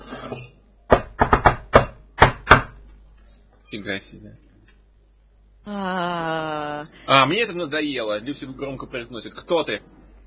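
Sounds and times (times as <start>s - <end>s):
speech: 0.3s - 0.6s, 3.7s - 4.4s, 5.6s - 9.9s
knocking on a door: 0.9s - 2.8s.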